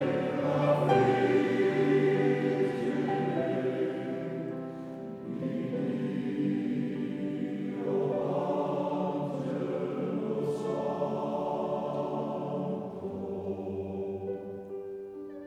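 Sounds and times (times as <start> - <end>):
male choir singing: 0.0 - 14.7.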